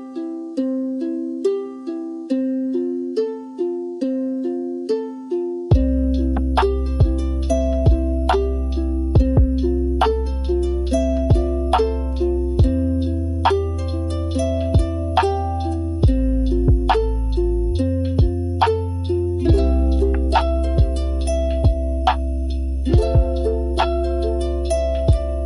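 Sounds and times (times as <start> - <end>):
raindrops on strings: 0.0 - 25.4.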